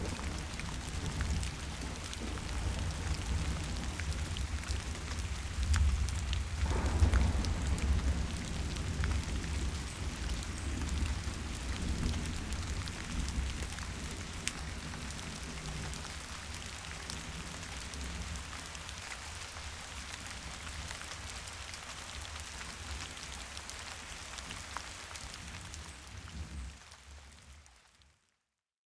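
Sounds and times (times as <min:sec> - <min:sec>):
thunderstorm: 0:00.0 - 0:22.9.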